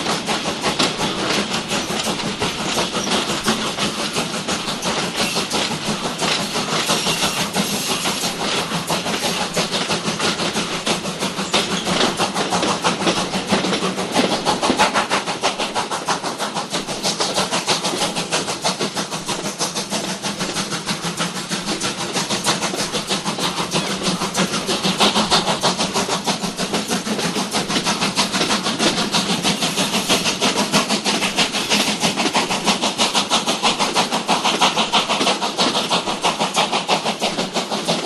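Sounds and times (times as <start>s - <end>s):
steam train starting and pulling away outside: 0.0s - 38.0s.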